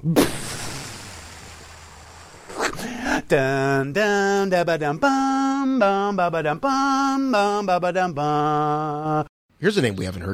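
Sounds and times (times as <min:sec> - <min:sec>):
speech: 0:00.0 - 0:00.5, 0:02.8 - 0:10.3
sharp blast: 0:00.0 - 0:03.4
explosion sound effect with low rumble: 0:00.0 - 0:03.8.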